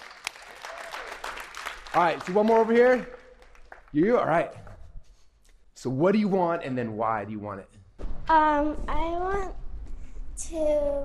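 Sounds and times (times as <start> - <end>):
audience applause: 0.0 - 4.4
speech: 2.0 - 3.2, 3.9 - 4.6, 5.8 - 9.6, 10.4 - 11.0.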